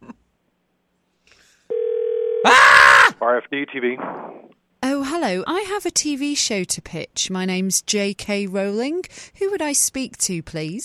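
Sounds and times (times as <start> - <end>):
telephone ringing unanswered: 1.7 - 2.5
speech: 3.4 - 4.6, 5.2 - 10.8.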